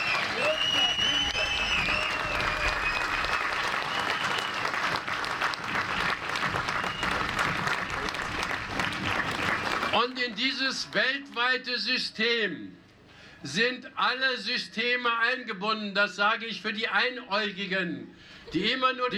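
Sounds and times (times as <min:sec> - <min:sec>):
applause: 0:00.0 - 0:11.4
speech: 0:10.4 - 0:12.8, 0:13.4 - 0:19.1.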